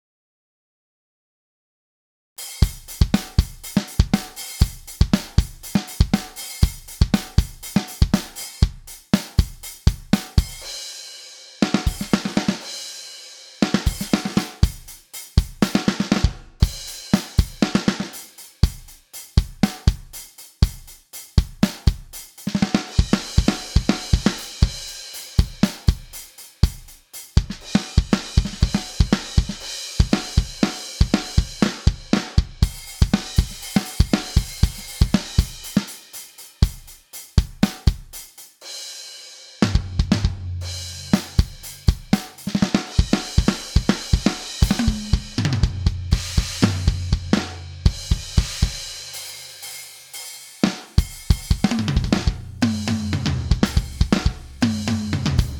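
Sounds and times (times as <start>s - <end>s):
Groove Agent 4 drum beat: 2.6s - 10.7s, 11.7s - 12.6s, 13.6s - 38.4s, 39.7s - 55.5s.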